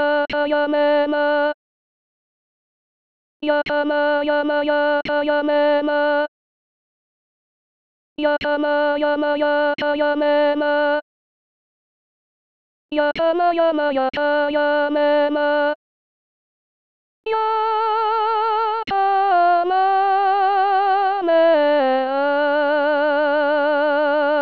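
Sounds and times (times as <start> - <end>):
solo soprano voice: 0.0 - 1.6, 3.4 - 6.3, 8.2 - 11.0, 12.9 - 15.8, 17.3 - 24.3.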